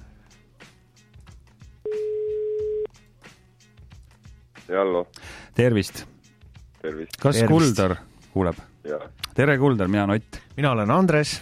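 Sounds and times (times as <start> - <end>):
telephone ringback tone during an outgoing call: 1.9 - 2.9
speech: 4.7 - 6.1, 6.8 - 11.4.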